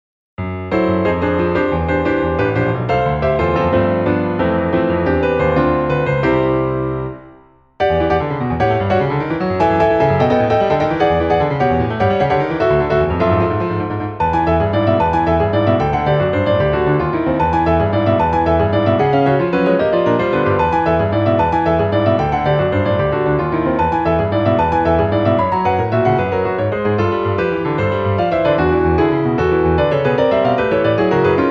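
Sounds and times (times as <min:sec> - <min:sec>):
piano: 0:00.4 - 0:31.5.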